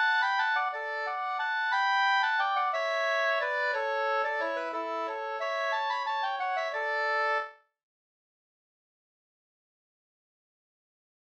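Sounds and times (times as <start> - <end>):
waltz in two parts: 0.0 - 7.5.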